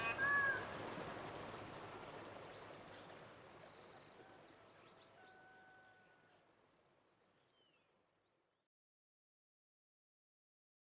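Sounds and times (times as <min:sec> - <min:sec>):
nature music: 0:00.0 - 0:08.4.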